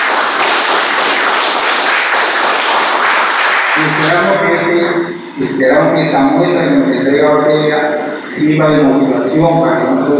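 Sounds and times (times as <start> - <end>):
crowd applauding: 0.0 - 4.7
speech: 3.8 - 10.1.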